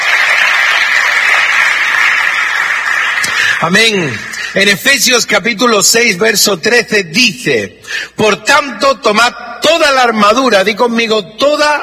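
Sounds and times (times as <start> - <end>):
crowd applause: 0.0 - 4.6
speech: 3.6 - 11.8.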